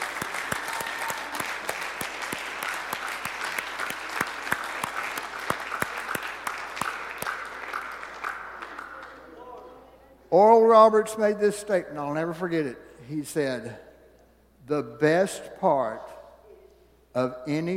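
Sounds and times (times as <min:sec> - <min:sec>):
audience applause: 0:00.0 - 0:09.4
speech: 0:10.4 - 0:13.9, 0:14.7 - 0:16.2, 0:17.2 - 0:17.7.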